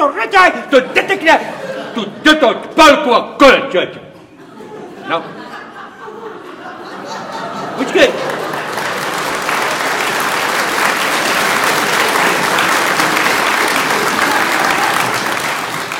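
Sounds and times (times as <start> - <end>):
speech: 0.1 - 4.1, 5.1 - 5.4, 7.8 - 8.3
laughter: 0.6 - 2.6, 4.2 - 15.9
audience clapping politely: 7.6 - 15.9.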